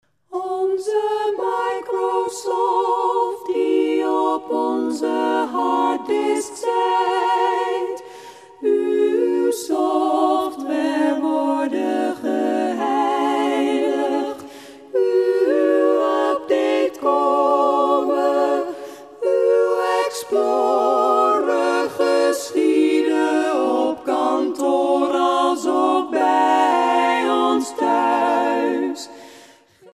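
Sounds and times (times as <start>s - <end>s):
SSAA female choir singing: 0.3s - 29.9s.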